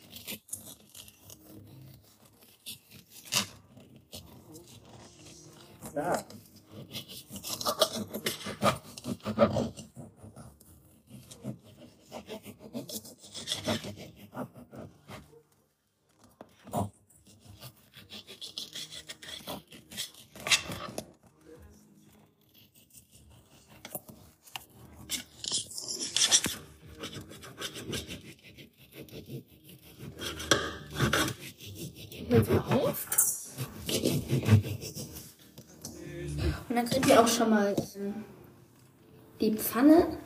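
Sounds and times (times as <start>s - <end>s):
knife cutting food on a wooden board: 0.0s - 15.4s, 16.4s - 21.5s, 22.4s - 37.9s
speech: 6.0s - 6.4s, 36.8s - 38.4s, 39.4s - 40.2s.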